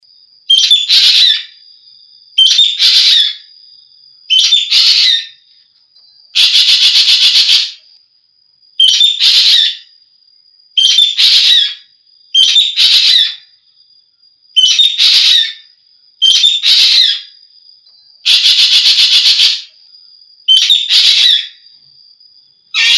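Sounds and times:
Javan green magpie whistles and rasps: 0:00.5 - 0:01.6, 0:02.4 - 0:03.4, 0:04.3 - 0:05.4, 0:06.4 - 0:07.8, 0:08.8 - 0:09.9, 0:10.8 - 0:11.8, 0:12.4 - 0:13.5, 0:14.6 - 0:17.3, 0:18.3 - 0:19.7, 0:20.5 - 0:21.6, 0:22.8 - 0:22.9.

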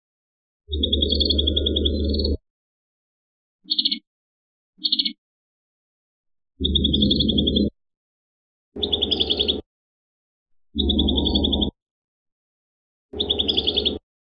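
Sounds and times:
prinia singing trills: 0:00.7 - 0:02.4, 0:03.7 - 0:04.1, 0:04.8 - 0:05.2, 0:06.6 - 0:07.7, 0:08.8 - 0:09.6, 0:10.8 - 0:11.8, 0:13.2 - 0:14.0.

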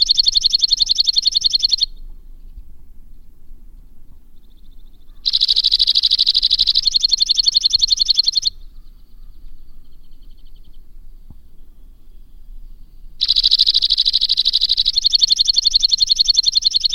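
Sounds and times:
white-winged crossbill delivering rapid high rattling trills: 0:00.0 - 0:02.1, 0:04.4 - 0:10.4, 0:13.2 - 0:16.9.

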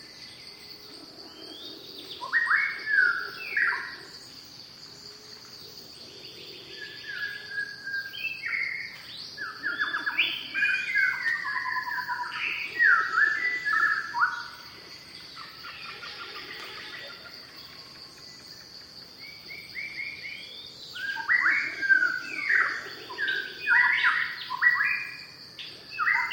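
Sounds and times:
high-pitched insect hum: 0:00.0 - 0:26.3
white-rumped shama song: 0:06.8 - 0:14.5, 0:19.2 - 0:25.2, 0:26.0 - 0:26.3.

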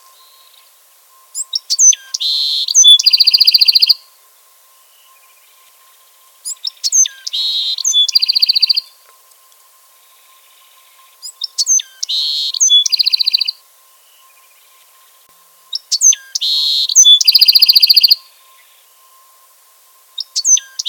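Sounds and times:
Bewick's wren song: 0:00.0 - 0:04.0, 0:06.4 - 0:09.1, 0:10.0 - 0:18.9, 0:20.2 - 0:20.8.

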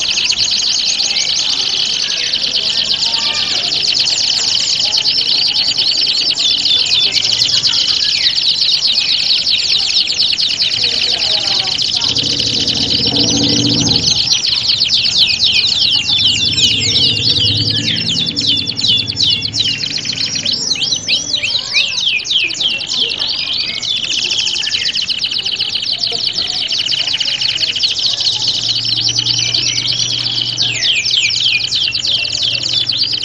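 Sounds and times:
canary singing in a standard canary contest simulation: 0:00.0 - 0:33.2.

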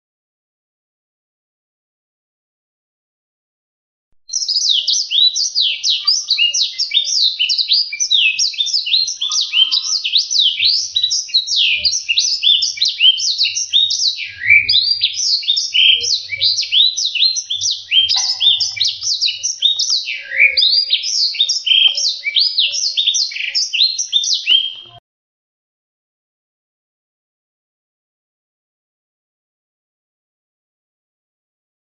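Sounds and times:
black-throated seedeater singing a long rapid warble: 0:04.3 - 0:25.0.

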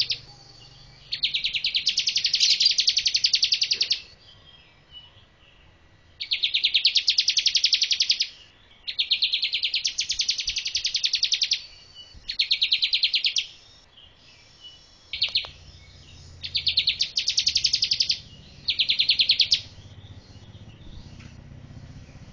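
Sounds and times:
bar-winged prinia rapid buzzy high notes: 0:00.0 - 0:04.2, 0:06.2 - 0:22.3.

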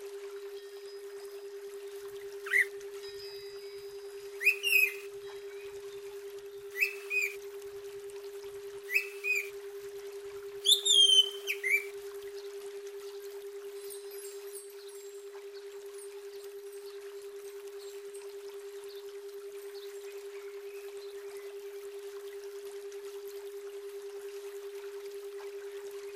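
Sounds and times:
female Oriental magpie-robin whistles and ciam calls: 0:02.4 - 0:02.7, 0:04.4 - 0:05.1, 0:06.7 - 0:07.4, 0:08.9 - 0:09.5, 0:10.6 - 0:11.9.

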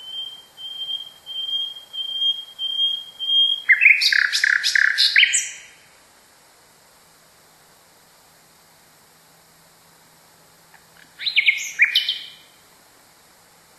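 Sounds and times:
nightingale song: 0:00.0 - 0:06.0, 0:11.0 - 0:12.8.

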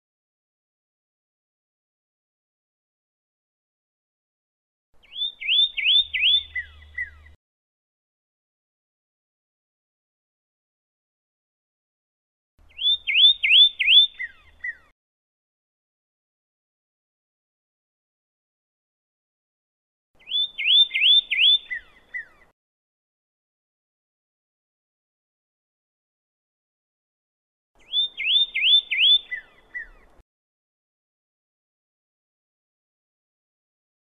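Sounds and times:
pyrrhuloxia chirping: 0:05.0 - 0:07.4, 0:12.7 - 0:15.0, 0:20.2 - 0:22.5, 0:27.8 - 0:30.2.

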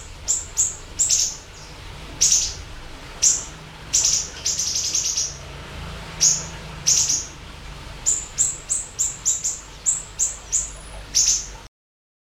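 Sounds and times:
Eurasian tree sparrow chirps: 0:00.0 - 0:05.5, 0:06.1 - 0:11.7
low background hum: 0:00.0 - 0:11.7.

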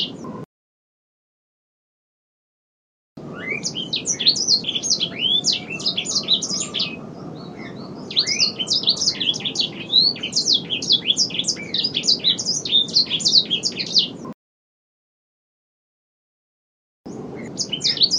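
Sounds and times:
bird singing vigorously: 0:00.0 - 0:00.4, 0:03.2 - 0:14.4, 0:17.1 - 0:18.1.

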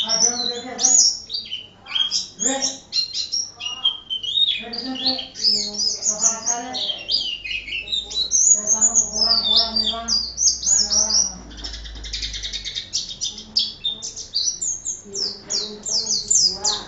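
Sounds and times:
white-eye singing an excited song: 0:00.0 - 0:16.8.

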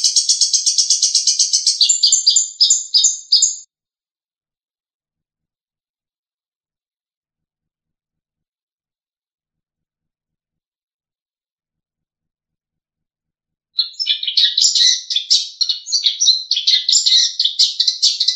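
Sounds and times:
long-tailed shrike trilling: 0:00.0 - 0:03.6, 0:13.8 - 0:18.3.

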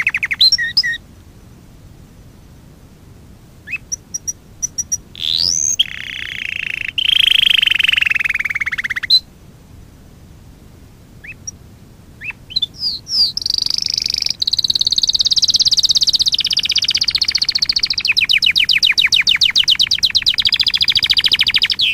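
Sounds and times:
Fife canary singing: 0:00.0 - 0:01.0, 0:03.6 - 0:09.3, 0:11.2 - 0:11.6, 0:12.2 - 0:21.9.

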